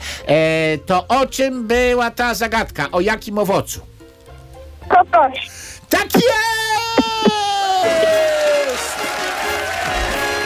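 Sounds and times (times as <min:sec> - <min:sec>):
speech: 0:00.3 - 0:03.9, 0:05.0 - 0:07.1
group applause: 0:07.8 - 0:10.2.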